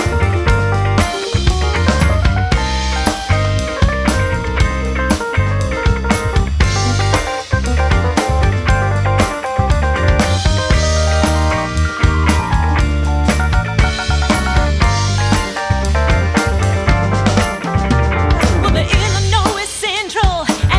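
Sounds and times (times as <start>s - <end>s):
rock pop band playing: 0.0s - 20.7s.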